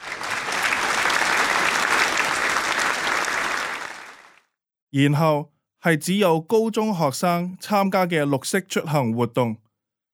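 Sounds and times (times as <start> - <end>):
audience applause: 0.0 - 4.5
speech: 4.9 - 9.6.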